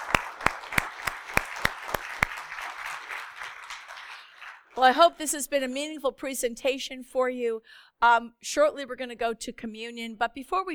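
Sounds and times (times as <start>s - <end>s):
audience clapping hands: 0.0s - 5.0s
speech: 4.8s - 10.7s.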